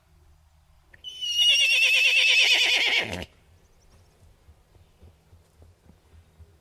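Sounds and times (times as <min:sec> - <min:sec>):
pony neighing: 0:01.1 - 0:03.3.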